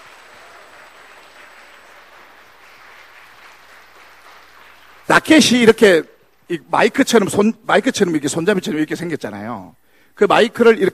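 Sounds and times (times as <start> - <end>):
audience applause: 0.0 - 5.4
speech: 5.1 - 10.9.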